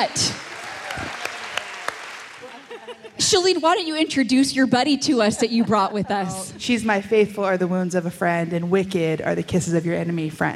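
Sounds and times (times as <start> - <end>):
speech: 0.0 - 1.2, 2.8 - 10.5
audience round of applause: 0.0 - 3.2
laughter: 2.3 - 3.5.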